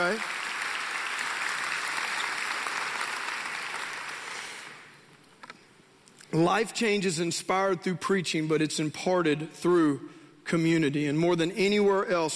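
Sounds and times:
speech: 0.0 - 0.4, 6.3 - 12.3
audience clapping: 0.0 - 5.0.

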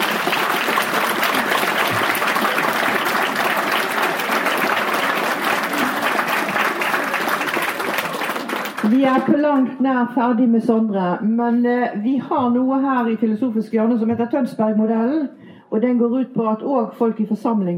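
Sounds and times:
audience applause: 0.0 - 9.3
speech: 8.8 - 17.7.

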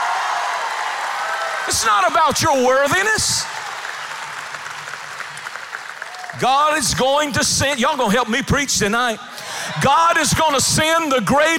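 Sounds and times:
audience clapping: 0.0 - 7.7
speech: 1.7 - 3.6, 6.4 - 11.5.

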